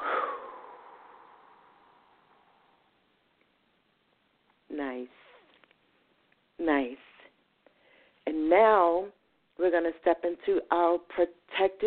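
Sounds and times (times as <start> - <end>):
person breathing out slowly in a guided breathing exercise: 0.0 - 2.4
speech: 6.6 - 7.0, 8.6 - 11.8.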